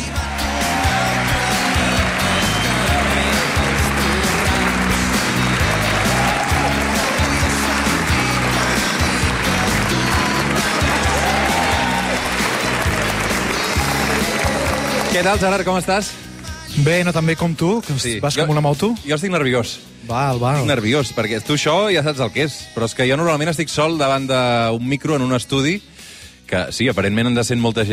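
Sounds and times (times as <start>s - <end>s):
audience applause: 0.0s - 15.4s
speech: 15.2s - 16.2s, 16.8s - 25.9s, 26.5s - 27.9s.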